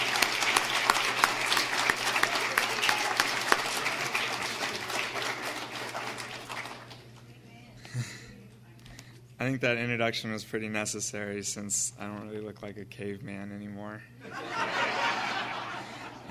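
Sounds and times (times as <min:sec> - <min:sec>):
audience applause welcoming a graduating student: 0:00.0 - 0:07.2
speech: 0:09.4 - 0:14.7
laughter: 0:14.2 - 0:16.3.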